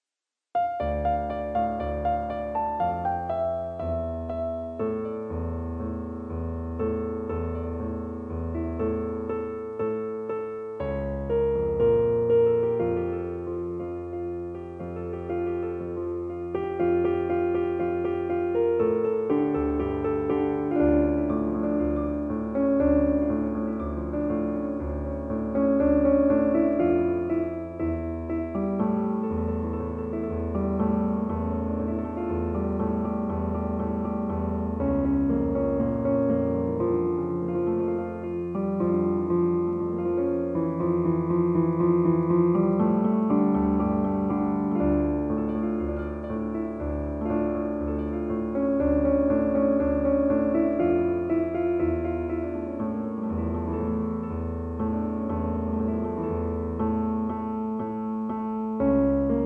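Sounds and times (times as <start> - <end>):
piano: 0.0 - 59.4.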